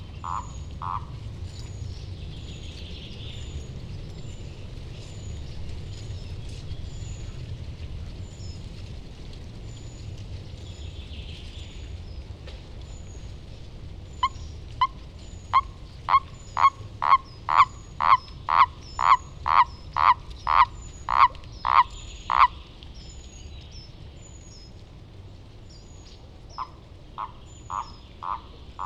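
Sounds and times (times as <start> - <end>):
common toad Bufo bufo calling: 0.0 - 1.2, 14.2 - 22.6, 26.5 - 28.8.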